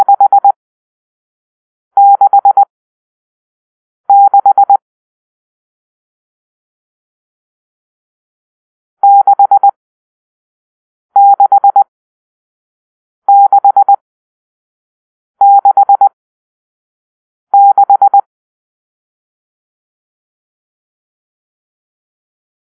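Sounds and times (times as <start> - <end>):
morse code beeps for numeral six: 0.0 - 0.6, 2.0 - 2.7, 4.1 - 4.8, 9.0 - 9.8, 11.2 - 11.8, 13.3 - 14.0, 15.4 - 16.1, 17.6 - 18.2.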